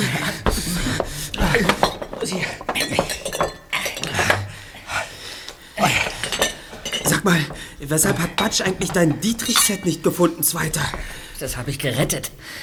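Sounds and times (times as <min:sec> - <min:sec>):
faint breathing: 0:00.0 - 0:02.7, 0:04.2 - 0:07.8, 0:12.4 - 0:12.6
glasses clinking: 0:00.0 - 0:11.5
scraping and shuffling: 0:00.0 - 0:12.4
speech: 0:07.3 - 0:12.6.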